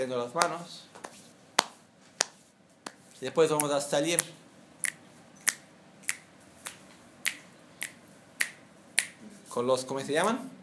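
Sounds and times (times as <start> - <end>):
speech: 0.0 - 0.9, 3.2 - 4.4, 9.6 - 10.6
faint hiss: 0.0 - 10.6
finger snaps: 3.6 - 9.2.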